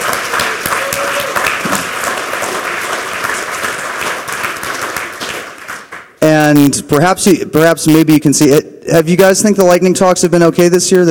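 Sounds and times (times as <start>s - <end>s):
audience applause: 0.0s - 6.2s
speech: 6.7s - 11.0s.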